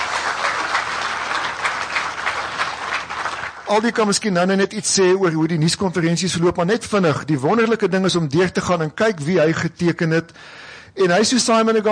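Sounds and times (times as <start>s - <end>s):
audience clapping: 0.0s - 4.4s
speech: 3.7s - 11.9s.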